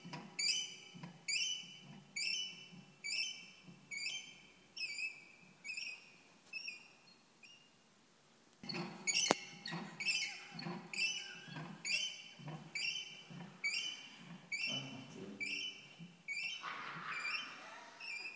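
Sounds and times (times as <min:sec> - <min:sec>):
squeak: 0:00.0 - 0:07.8, 0:08.6 - 0:18.3.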